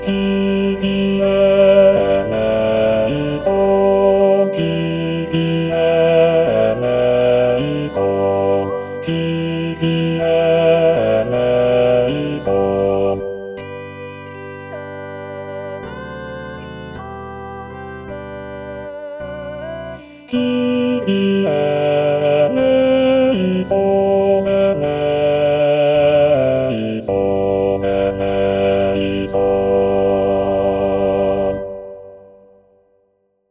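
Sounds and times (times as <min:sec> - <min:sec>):
bass voice singing a kyrie: 0:00.0 - 0:13.4, 0:18.8 - 0:32.0.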